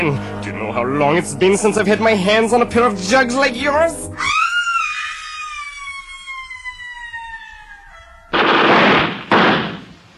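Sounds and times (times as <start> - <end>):
speech: 0.0 - 4.4
gunshots in a film scene: 8.3 - 10.1.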